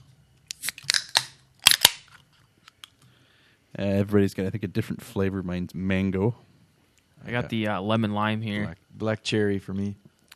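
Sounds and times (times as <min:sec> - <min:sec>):
low steady hum: 0:00.0 - 0:10.3
seltzer cans cracking open with fizz of escaping carbonation: 0:00.4 - 0:03.1
speech: 0:03.8 - 0:06.5, 0:07.2 - 0:10.1.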